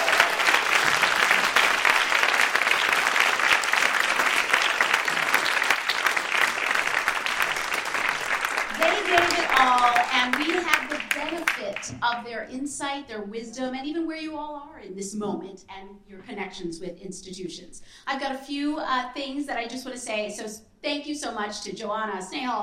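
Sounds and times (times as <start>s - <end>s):
audience applause: 0.0s - 11.9s
speech: 12.0s - 22.6s.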